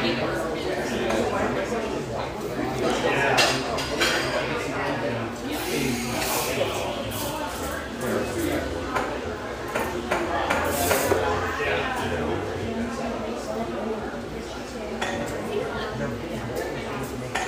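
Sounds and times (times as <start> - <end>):
murmur of overlapping voices in a coffeeshop: 0.0 - 17.4
dishes and cutlery clinking and clattering: 3.2 - 4.6, 7.1 - 11.3, 17.0 - 17.4.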